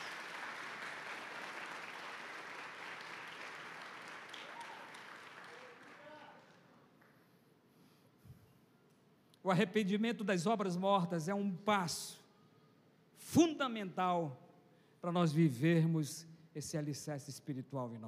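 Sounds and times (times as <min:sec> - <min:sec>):
audience applauding: 0:00.0 - 0:06.7
speech: 0:09.4 - 0:12.2, 0:13.3 - 0:14.4, 0:15.0 - 0:18.0.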